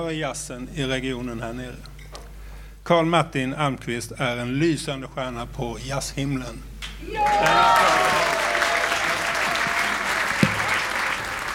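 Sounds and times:
speech: 0.0s - 1.9s, 2.9s - 8.4s
crowd applauding: 7.0s - 11.5s
whistles and cheers: 7.0s - 11.5s.

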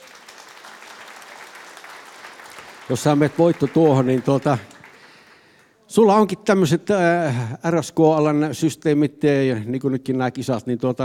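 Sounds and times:
audience applause for a contestant on stage: 0.0s - 5.7s
speech: 2.9s - 4.7s, 6.0s - 11.0s.

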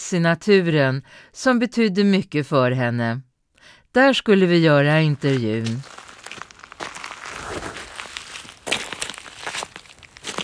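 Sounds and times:
speech: 0.1s - 6.0s
footsteps on large stones of the Lainio River bank near Övre Soppero in Kiruna: 5.1s - 10.4s.

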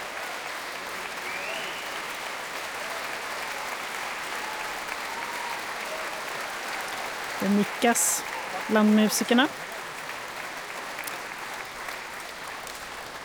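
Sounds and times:
audience applause: 0.0s - 13.2s
speech: 7.4s - 9.7s.

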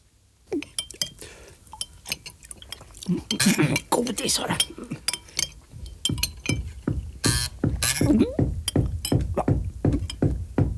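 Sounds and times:
speech: 3.1s - 5.2s
knocking: 5.8s - 10.7s.

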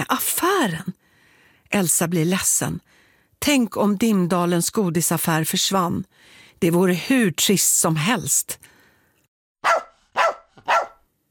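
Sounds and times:
speech: 0.1s - 1.0s, 1.7s - 8.7s, 9.6s - 9.9s
dog barking loudly and shrilly: 9.6s - 11.1s.

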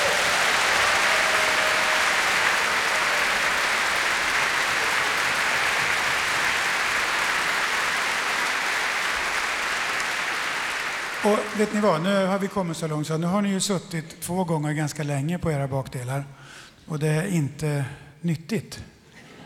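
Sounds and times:
large audience applause: 0.0s - 12.6s
speech: 11.2s - 18.9s.

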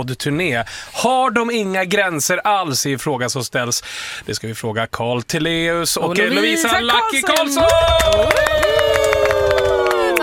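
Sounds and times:
speech: 0.0s - 9.0s
studio guests in a radio studio clapping rhythmically: 6.7s - 10.2s.

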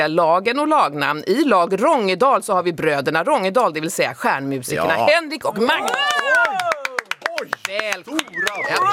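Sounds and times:
speech: 0.0s - 6.6s, 7.4s - 8.9s
audience applause: 5.6s - 8.9s.

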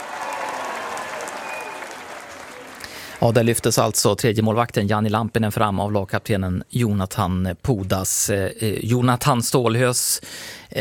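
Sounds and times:
audience applause: 0.0s - 3.9s
speech: 3.2s - 10.7s.

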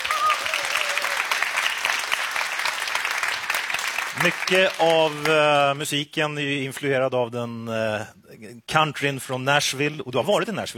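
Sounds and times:
audience applause for the band: 0.0s - 5.8s
speech: 4.2s - 10.7s.

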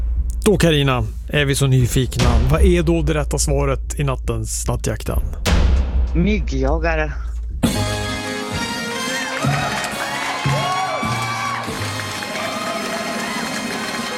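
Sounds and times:
speech: 0.5s - 5.4s, 6.1s - 8.0s
fanfare sound effect: 7.7s - 14.1s
applause sound effect: 8.6s - 14.1s.

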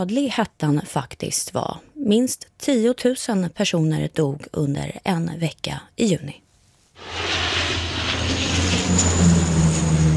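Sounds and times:
speech: 0.0s - 6.4s, 8.9s - 9.4s
firefighting aircraft flying overhead: 7.0s - 10.1s.

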